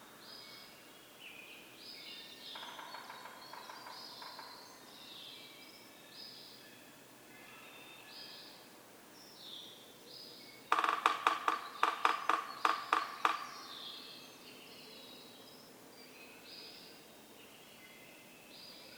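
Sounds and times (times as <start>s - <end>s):
birds singing: 0.2s - 18.9s
Yellow-bellied Sapsucker drumming: 2.5s - 4.5s, 10.7s - 13.7s.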